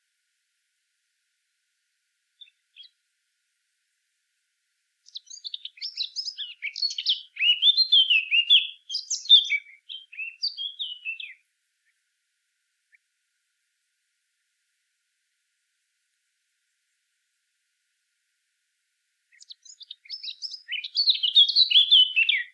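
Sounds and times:
Eurasian blackcap Sylvia atricapilla song of fast chattering varied warbling: 2.4s - 2.9s, 5.0s - 11.4s, 19.3s - 22.5s.

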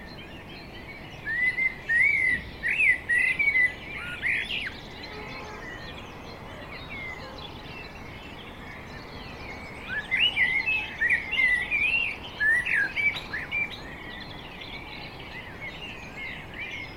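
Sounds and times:
Turdus merula singing: 0.0s - 16.9s.

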